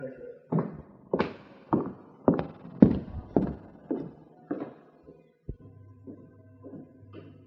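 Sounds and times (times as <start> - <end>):
footsteps: 0.5 - 7.3.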